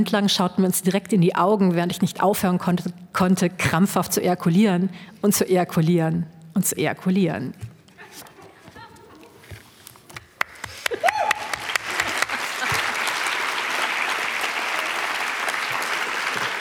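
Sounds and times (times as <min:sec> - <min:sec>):
speech: 0:00.0 - 0:08.3
laughter: 0:08.0 - 0:09.5, 0:10.9 - 0:16.6
live audience applause: 0:10.4 - 0:16.6.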